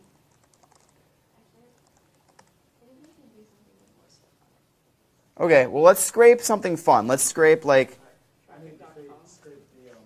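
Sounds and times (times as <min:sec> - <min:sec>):
typing a search into Google on a computer keyboard: 0:00.3 - 0:01.0, 0:01.8 - 0:02.6
speech: 0:05.4 - 0:08.0.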